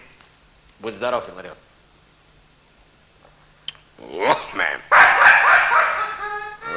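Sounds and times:
speech: 0:00.9 - 0:01.7
stray mongrel dog yowling: 0:04.9 - 0:06.2.

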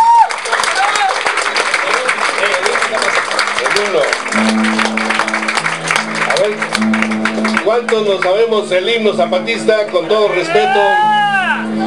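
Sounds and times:
loud crowd applause at a gathering honoring the Zapatista struggle: 0:00.0 - 0:08.9
sustained tones: 0:04.3 - 0:10.9
speech: 0:07.7 - 0:11.1
voices shouting: 0:10.3 - 0:11.8.

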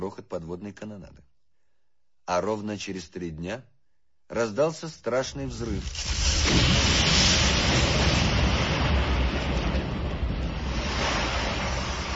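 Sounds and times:
speech: 0:00.0 - 0:01.3, 0:02.3 - 0:03.7, 0:04.3 - 0:07.2
sea waves from the Wash surging into the collapsed River Nene mouth: 0:05.9 - 0:12.1.

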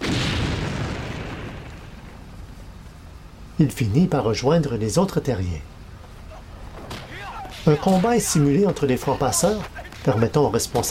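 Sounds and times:
car explosion: 0:00.0 - 0:02.4, 0:06.6 - 0:08.4
speech: 0:03.6 - 0:05.7, 0:07.6 - 0:10.8.

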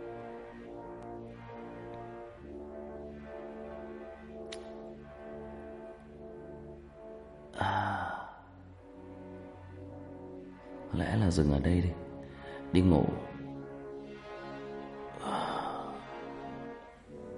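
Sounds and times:
person yawning while growing sleepy reading aloud: 0:07.6 - 0:08.4
speech: 0:10.9 - 0:12.0, 0:12.7 - 0:13.3.

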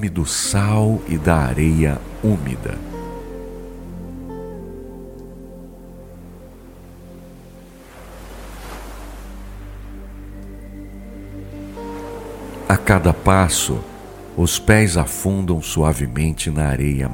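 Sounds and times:
speech: 0:00.0 - 0:02.9, 0:12.8 - 0:17.1
soft layered musical tones: 0:00.0 - 0:17.1
ocean wave washing in on a sandy beach at sunset: 0:00.9 - 0:04.9, 0:06.3 - 0:14.7.

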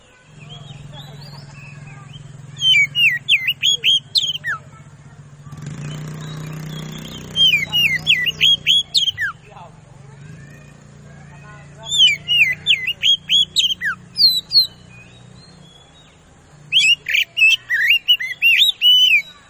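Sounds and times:
Oriental magpie-robin singing fast loud whistled lure song: 0:00.4 - 0:04.7, 0:05.7 - 0:09.5, 0:11.6 - 0:19.4.

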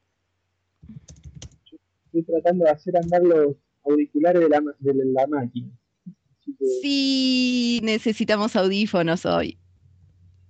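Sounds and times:
typing a message on a computer keyboard: 0:00.8 - 0:01.7, 0:02.9 - 0:03.2
speech: 0:02.2 - 0:05.8, 0:06.6 - 0:09.6.

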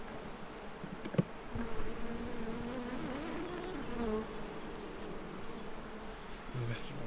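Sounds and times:
honeybees buzzing at the hive: 0:00.1 - 0:07.0.

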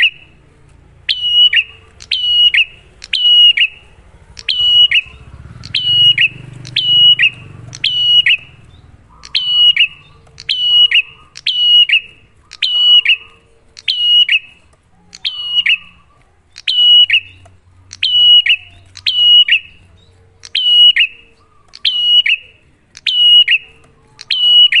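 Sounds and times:
Bar-winged prinia sharp chirped whistled song: 0:00.0 - 0:24.7.

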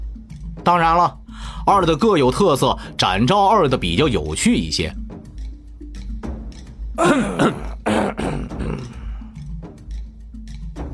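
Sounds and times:
speech: 0:00.7 - 0:05.0, 0:07.0 - 0:07.7
two people coughing at once: 0:07.0 - 0:09.1.

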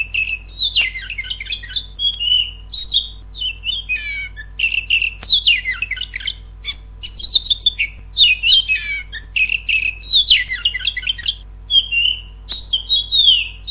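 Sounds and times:
Oriental magpie-robin whistled song: 0:00.0 - 0:13.7.

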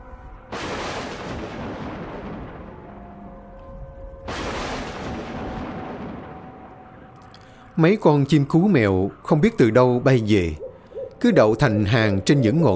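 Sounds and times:
violent thunder: 0:00.5 - 0:07.1
speech: 0:07.8 - 0:10.6, 0:11.2 - 0:12.7.

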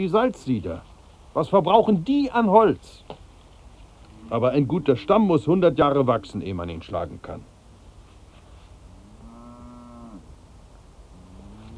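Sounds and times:
speech: 0:00.0 - 0:03.2, 0:04.3 - 0:07.5
cow mooing as herd is driven: 0:09.0 - 0:10.3, 0:11.2 - 0:11.7.

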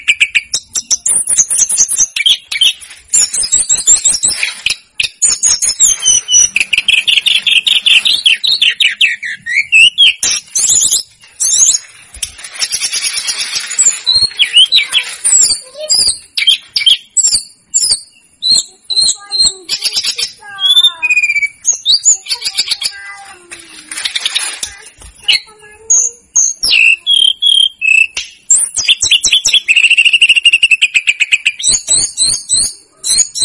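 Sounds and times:
snowy-browed flycatcher song: 0:00.0 - 0:33.4.

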